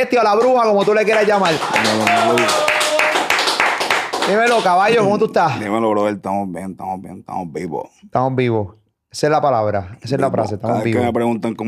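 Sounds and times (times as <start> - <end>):
speech: 0.0 - 2.7, 4.3 - 11.6
small group applauding: 0.0 - 5.2
person cheering or whooping: 1.5 - 3.4.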